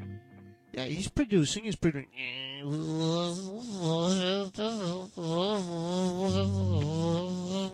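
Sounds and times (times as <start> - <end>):
speech: 0.8 - 7.2
synthesized mosquito buzz made with a VST digital plugin: 2.6 - 7.7.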